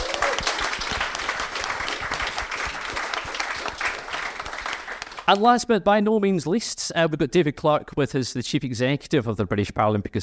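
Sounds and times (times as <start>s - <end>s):
audience applause: 0.0s - 5.4s
speech: 5.3s - 10.2s.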